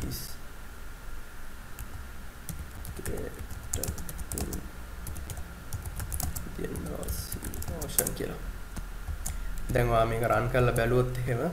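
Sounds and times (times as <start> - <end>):
speech: 0.0 - 0.3, 8.2 - 8.6, 9.7 - 11.5
steady hiss: 0.0 - 11.5
computer keyboard typing: 1.8 - 9.8.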